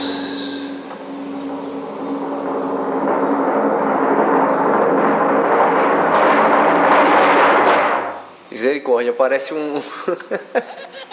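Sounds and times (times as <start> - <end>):
drum roll sound effect: 1.8 - 8.4
speech: 8.8 - 11.1
laughter: 9.8 - 11.1.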